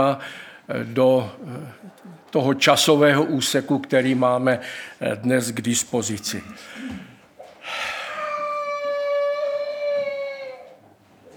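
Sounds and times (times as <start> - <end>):
speech: 0.0 - 7.1
young child crying wail: 8.0 - 10.8.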